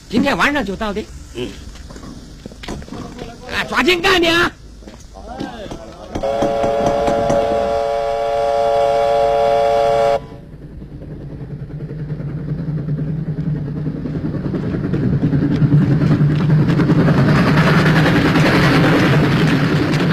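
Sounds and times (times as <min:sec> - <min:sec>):
train rolling along: 0:00.0 - 0:20.1
speech: 0:00.1 - 0:01.7, 0:03.5 - 0:04.6, 0:06.2 - 0:06.9
train whistle blast: 0:06.2 - 0:10.4.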